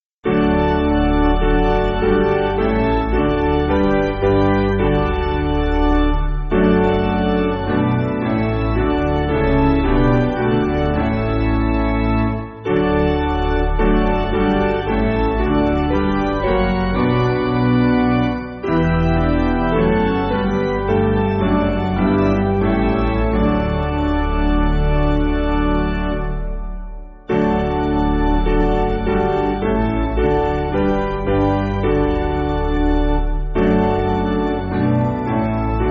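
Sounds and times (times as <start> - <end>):
piano backing music for churches: 0.2 - 35.8.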